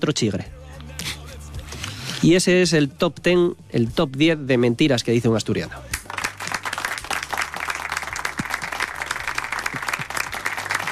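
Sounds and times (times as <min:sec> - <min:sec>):
speech: 0:00.0 - 0:00.6, 0:02.2 - 0:05.9
audience applause: 0:06.1 - 0:10.9.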